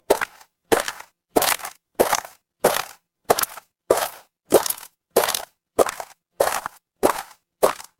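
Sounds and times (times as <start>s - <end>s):
footsteps on gravel: 0.0s - 7.9s.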